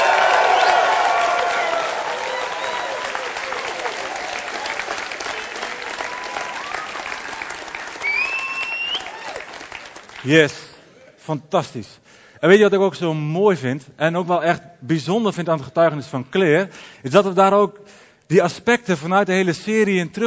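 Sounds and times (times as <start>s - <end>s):
people cheering for a victory: 0.0s - 10.5s
speech: 10.3s - 10.7s, 11.3s - 20.2s.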